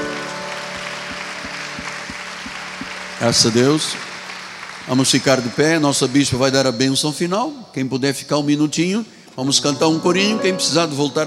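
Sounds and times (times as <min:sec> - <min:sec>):
audience applauding: 0:00.0 - 0:06.8
speech: 0:03.2 - 0:04.0, 0:04.9 - 0:11.2.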